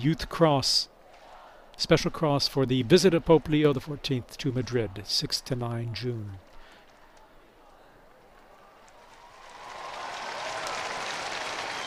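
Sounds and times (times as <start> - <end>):
speech: 0.0 - 0.9, 1.8 - 6.5
applause after Pope Leo's signing of the cross: 8.3 - 11.8.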